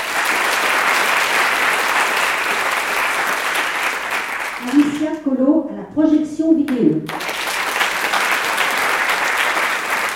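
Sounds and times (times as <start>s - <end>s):
audience applause: 0.0s - 5.1s, 7.1s - 10.1s
speech: 5.3s - 7.3s.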